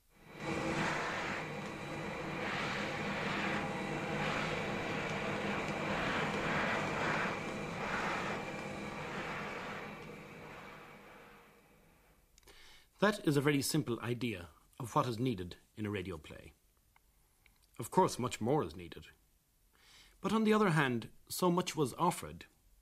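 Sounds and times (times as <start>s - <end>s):
vacuum cleaner switched on and running: 0.0s - 12.2s
speech: 13.0s - 16.6s, 17.8s - 19.2s, 20.2s - 22.5s.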